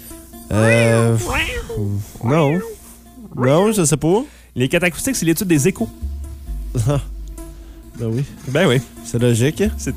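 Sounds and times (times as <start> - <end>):
person imitating cat meows: 0.5 - 3.7
speech: 0.6 - 2.8, 3.4 - 6.1, 6.7 - 7.2, 8.0 - 9.9.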